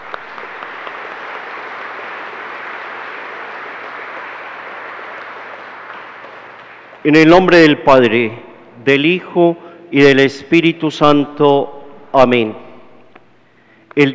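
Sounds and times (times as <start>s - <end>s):
audience applauding: 0.0s - 7.4s
speech: 7.0s - 12.6s, 14.0s - 14.1s.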